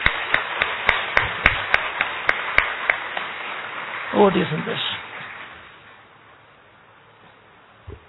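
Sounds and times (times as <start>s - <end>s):
audience applause: 0.0s - 5.4s
speech: 4.2s - 4.9s.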